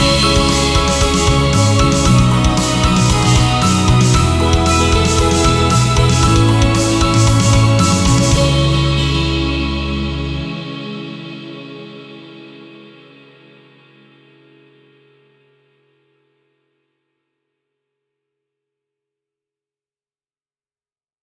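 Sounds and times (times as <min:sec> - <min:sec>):
instrumental music: 0:00.0 - 0:14.5.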